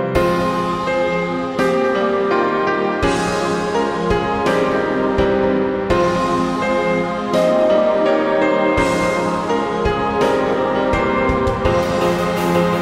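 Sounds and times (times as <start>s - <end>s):
snow forest battle music: 0.2s - 12.7s.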